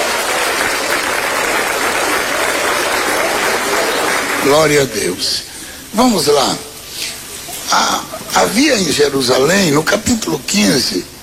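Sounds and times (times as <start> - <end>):
audience applauding loudly: 0.0 - 5.2
speech: 4.4 - 7.1, 7.7 - 11.1.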